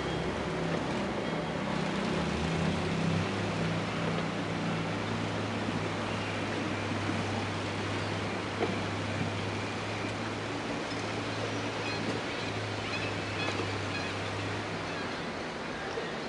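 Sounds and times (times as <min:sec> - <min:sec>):
waterside ambience in stereo: 0:00.0 - 0:16.2.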